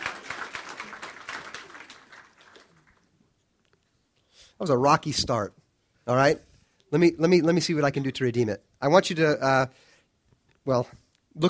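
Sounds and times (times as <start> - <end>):
audience applause: 0.0 - 3.2
speech: 4.6 - 9.9, 10.6 - 11.4.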